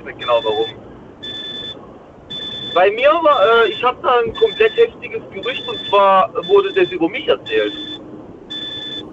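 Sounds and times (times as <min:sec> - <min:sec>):
speech: 0:00.0 - 0:00.8, 0:02.8 - 0:07.9
low rumble: 0:00.0 - 0:09.1
truck's electronic beeper: 0:00.0 - 0:09.1.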